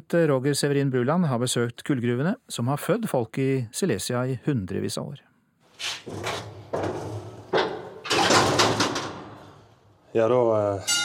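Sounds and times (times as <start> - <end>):
speech: 0.1 - 6.6, 10.1 - 11.0
mine elevator door closing with metallic clanks and scrapes: 6.1 - 9.7.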